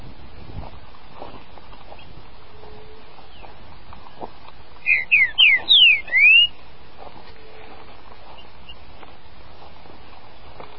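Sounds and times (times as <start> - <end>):
green-winged saltator singing: 4.8 - 6.6.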